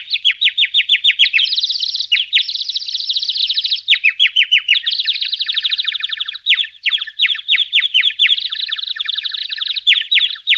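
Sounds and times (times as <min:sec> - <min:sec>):
bird chirping in trills: 0:00.0 - 0:10.5.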